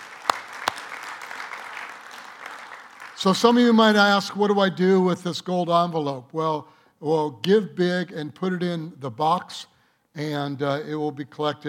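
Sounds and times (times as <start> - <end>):
audience applause: 0.0 - 3.7
speech: 3.2 - 11.6.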